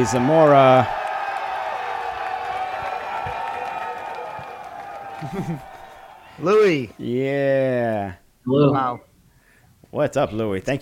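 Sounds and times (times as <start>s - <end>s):
speech: 0.0s - 1.0s, 5.2s - 5.7s, 6.4s - 9.1s, 9.9s - 10.7s
live audience applause and cheering: 0.0s - 7.7s
laughter: 2.9s - 7.2s.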